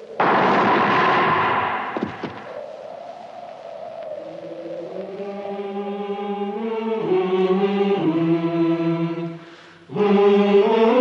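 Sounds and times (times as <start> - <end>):
sustained tonal sound: 0.0 - 10.9
rifle volley of a firing squad, radio drama effect set in 1940: 0.2 - 2.6.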